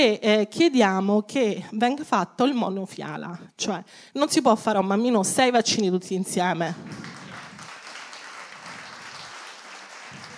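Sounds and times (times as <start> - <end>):
speech: 0.0 - 7.2
audience applause: 6.8 - 10.3.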